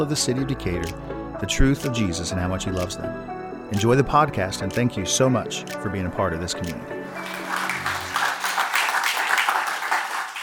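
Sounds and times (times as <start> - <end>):
speech: 0.0 - 7.4
audience applause welcoming a speaker in Decatur: 7.1 - 10.4.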